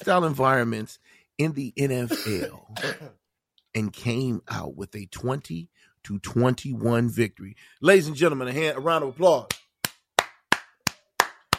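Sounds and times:
speech: 0.0 - 9.6
hand claps as applause for an NFL team: 9.5 - 11.5.

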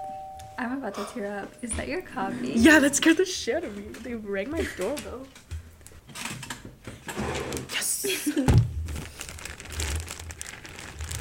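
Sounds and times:
speech: 0.6 - 5.5
brief louder thump: 8.5 - 8.8
crinkly wrapping being unwrapped: 8.7 - 11.1.

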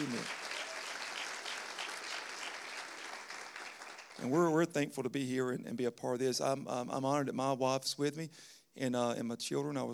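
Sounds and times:
speech: 0.0 - 0.4, 4.2 - 9.9
audience applause: 0.0 - 4.3.

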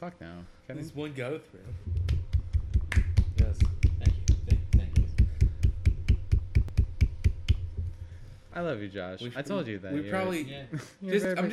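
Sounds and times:
speech: 0.0 - 2.0, 3.4 - 4.2, 8.6 - 11.5
two people clapping palms together: 2.0 - 7.7.

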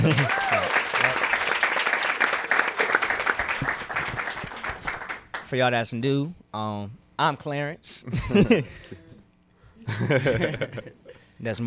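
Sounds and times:
speech: 0.0 - 0.4, 5.5 - 9.0, 9.9 - 11.6
laughter: 0.0 - 1.2, 8.1 - 9.0, 9.8 - 11.1
person cheering: 0.0 - 1.3
audience clapping: 0.0 - 5.6.

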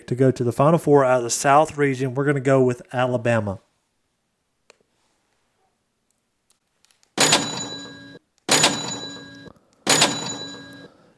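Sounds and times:
speech: 0.1 - 3.7
cash register sound effect: 7.2 - 11.0.

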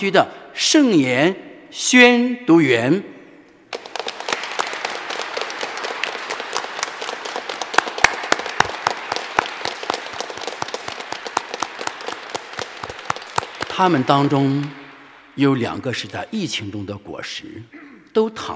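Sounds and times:
speech: 0.0 - 3.1, 13.8 - 14.8, 15.4 - 18.5
audience applause: 3.7 - 16.4.

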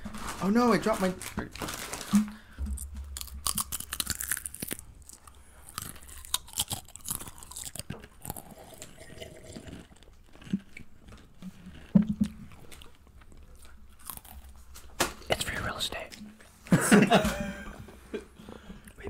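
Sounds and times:
biting and crunching crisp chips close to mic: 0.0 - 14.6
speech: 0.4 - 2.3
laughter: 16.7 - 18.3.

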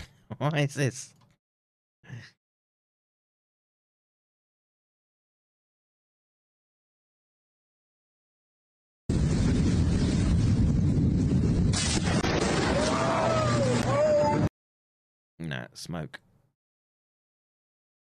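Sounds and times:
speech: 0.3 - 1.2, 2.1 - 2.4, 15.4 - 16.3
electrical transformer exploding: 9.1 - 13.5.

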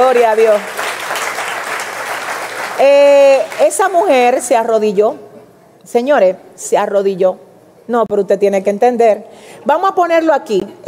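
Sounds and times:
speech: 0.1 - 0.8, 2.8 - 5.2, 5.8 - 10.8
audience applause: 0.2 - 2.8.

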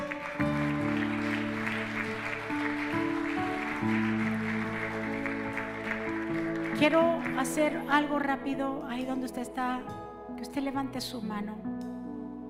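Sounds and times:
audience clapping: 0.0 - 8.3
held keyboard chords: 0.0 - 12.4
speech: 6.8 - 11.7.

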